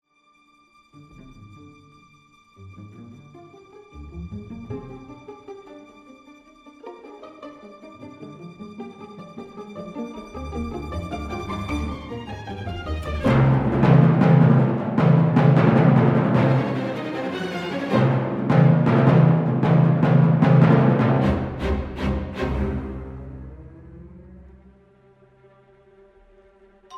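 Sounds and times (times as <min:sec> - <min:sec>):
percussion: 0:10.2 - 0:23.2.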